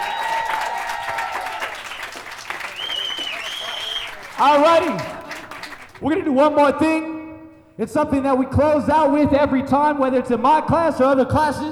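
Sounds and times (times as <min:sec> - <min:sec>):
audience applause: 0:00.0 - 0:06.0
speech: 0:04.4 - 0:05.2, 0:06.0 - 0:07.1, 0:07.8 - 0:11.7.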